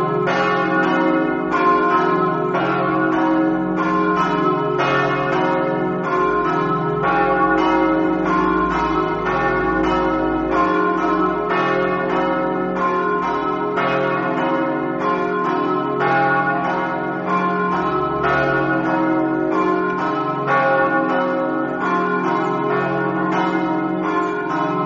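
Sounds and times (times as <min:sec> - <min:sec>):
bells ringing in Muzzana: 0:00.0 - 0:24.8.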